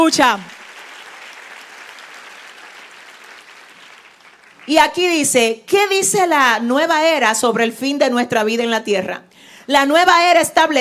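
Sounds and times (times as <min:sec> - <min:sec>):
speech: 0:00.0 - 0:00.6, 0:04.7 - 0:10.7
audience applause: 0:00.3 - 0:05.0.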